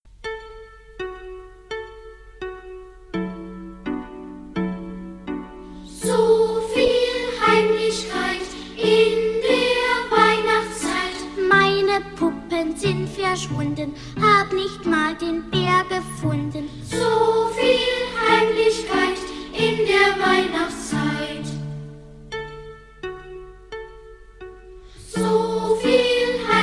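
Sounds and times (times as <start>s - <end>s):
song with vocals in D major: 5.8s - 21.7s, 25.0s - 26.6s.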